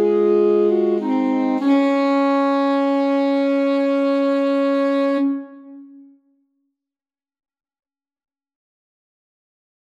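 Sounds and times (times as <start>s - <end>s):
alto sax quartet playing a Christmas carol: 0.0s - 6.1s.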